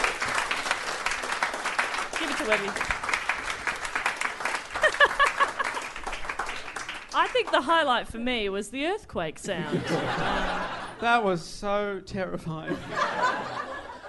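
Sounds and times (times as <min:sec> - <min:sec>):
round of applause from a small group: 0:00.0 - 0:07.6
speech: 0:02.4 - 0:03.0, 0:07.2 - 0:13.6
laughter: 0:04.7 - 0:06.0, 0:09.5 - 0:11.0, 0:12.7 - 0:14.0.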